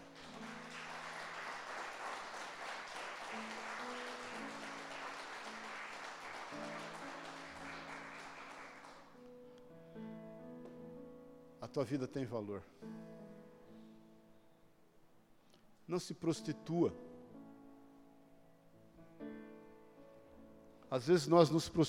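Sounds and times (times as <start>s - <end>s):
audience applause: 0.0s - 9.1s
speech: 11.7s - 13.0s, 15.9s - 17.1s, 21.0s - 21.8s.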